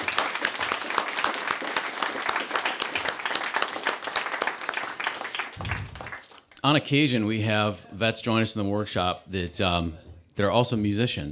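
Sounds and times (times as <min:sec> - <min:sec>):
audience applause: 0:00.0 - 0:06.5
speech: 0:06.6 - 0:11.3.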